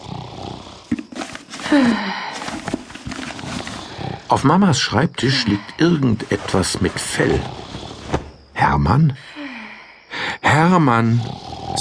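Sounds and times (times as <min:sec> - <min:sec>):
snoring: 0:00.0 - 0:01.0, 0:03.4 - 0:04.6, 0:05.2 - 0:08.1, 0:10.9 - 0:11.8
speech: 0:01.7 - 0:02.2, 0:04.3 - 0:07.6, 0:08.8 - 0:09.3, 0:10.5 - 0:11.8.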